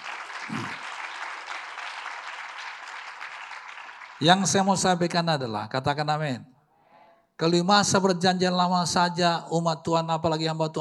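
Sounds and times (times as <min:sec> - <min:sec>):
audience applause: 0:00.0 - 0:04.6
speech: 0:04.2 - 0:06.5, 0:07.4 - 0:10.8.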